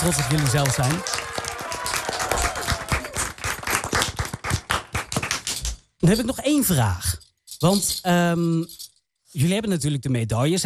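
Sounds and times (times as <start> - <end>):
speech: 0.0 - 1.5, 6.0 - 10.6
whistles and cheers: 0.0 - 3.4
crowd applauding: 0.0 - 5.6.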